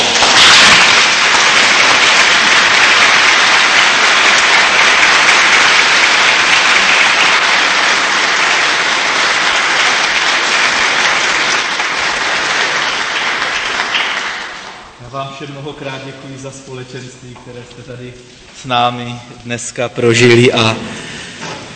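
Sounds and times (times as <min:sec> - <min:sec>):
applause in church: 0:00.0 - 0:15.0
speech: 0:15.4 - 0:20.9.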